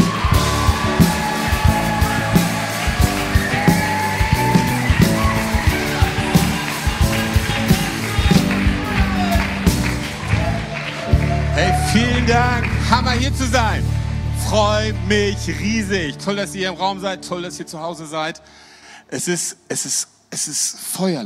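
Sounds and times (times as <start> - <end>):
audience applause: 0.0 - 13.8
speech: 12.3 - 21.2.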